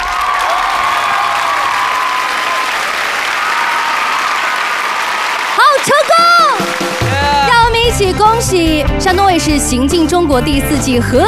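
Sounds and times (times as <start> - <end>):
studio audience applause: 0.0 - 7.8
speech: 8.0 - 11.2.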